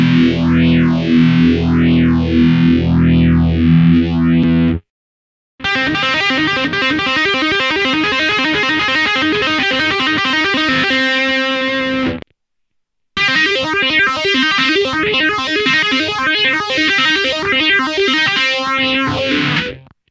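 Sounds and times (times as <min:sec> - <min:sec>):
distorted guitar through a phaser pedal: 0:00.0 - 0:04.8, 0:05.6 - 0:12.3, 0:13.2 - 0:20.0.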